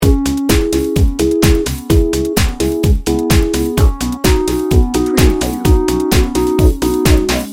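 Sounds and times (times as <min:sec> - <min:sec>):
electro loop: 0:00.0 - 0:07.5.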